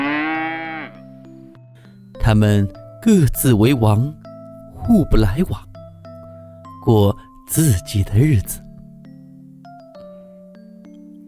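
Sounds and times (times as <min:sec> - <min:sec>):
cow mooing: 0:00.0 - 0:01.0
speech: 0:02.3 - 0:04.2, 0:04.8 - 0:05.7, 0:06.8 - 0:08.6.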